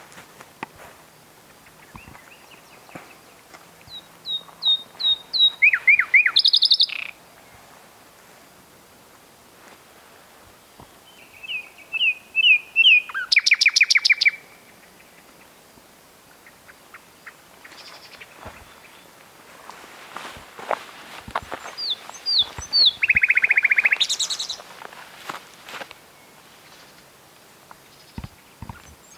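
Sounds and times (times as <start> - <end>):
common nightingale singing: 1.5 - 7.6, 11.0 - 15.6, 16.3 - 19.2, 21.4 - 24.9, 27.8 - 29.1.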